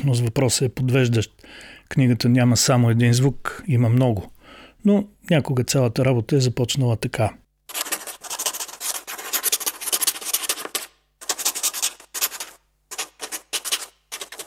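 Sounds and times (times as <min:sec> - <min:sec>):
speech: 0:00.0 - 0:07.4
duck quill pen writing on paper: 0:07.7 - 0:14.4.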